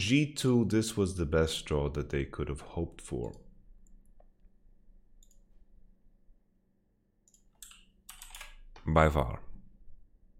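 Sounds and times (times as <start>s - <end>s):
speech: 0.0s - 3.4s, 8.9s - 9.5s
computer keyboard and mouse clicks taking a screenshot: 5.2s - 5.5s, 7.2s - 8.9s.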